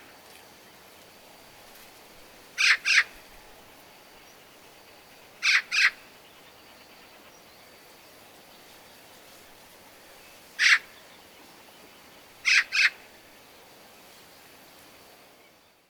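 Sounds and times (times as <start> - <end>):
Eurasian magpie giving harsh chack calls: 2.6 - 3.2, 5.4 - 6.0, 12.5 - 13.0.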